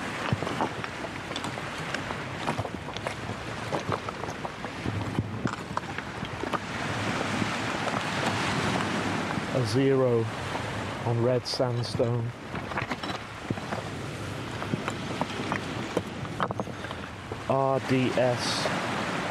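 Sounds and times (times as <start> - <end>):
waves on a shoreline: 0.0 - 19.2
wind: 0.0 - 19.2
speech: 9.7 - 12.4, 17.5 - 18.7.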